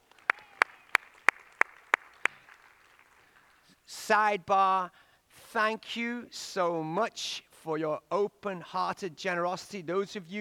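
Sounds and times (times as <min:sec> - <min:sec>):
audience clapping in unison: 0:00.0 - 0:03.7
speech: 0:04.0 - 0:10.4.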